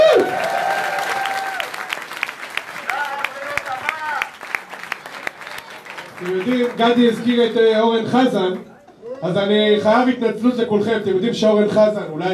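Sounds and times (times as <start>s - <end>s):
audience applause: 0.0s - 7.6s
speech: 6.2s - 12.3s.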